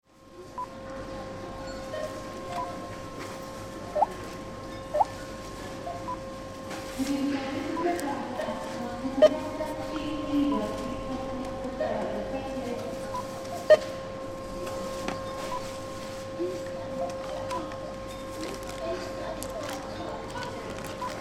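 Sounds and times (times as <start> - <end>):
supermarket self checkout machine: 1.7 - 21.1.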